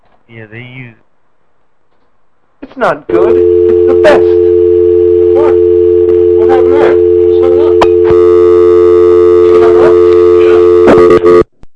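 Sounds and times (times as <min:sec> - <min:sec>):
speech: 0:00.3 - 0:01.1, 0:02.6 - 0:04.6, 0:06.5 - 0:07.8
phone line tone after hang-up: 0:03.1 - 0:11.5.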